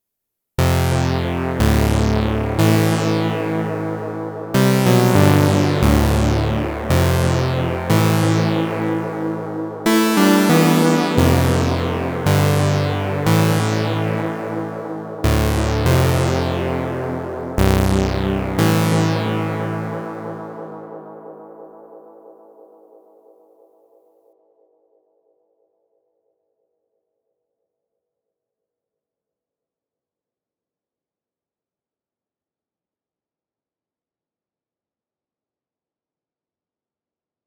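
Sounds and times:
SEM synthesizer bass: 0.6 - 21.2.

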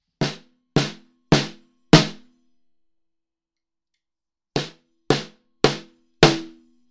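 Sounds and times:
e606 snare drum: 0.2 - 2.2, 4.6 - 6.6.

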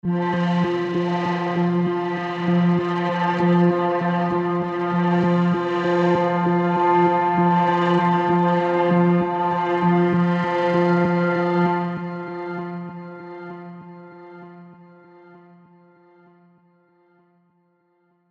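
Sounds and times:
synth pads: 0.0 - 14.8
guitars: 0.1 - 14.4.

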